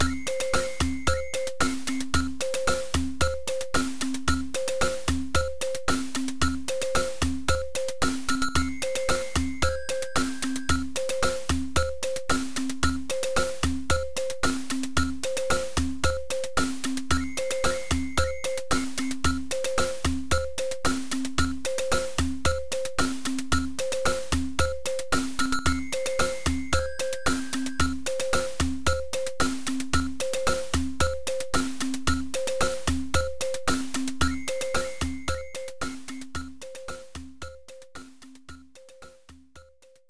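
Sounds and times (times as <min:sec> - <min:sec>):
rhythm loop: 0:00.0 - 0:39.8.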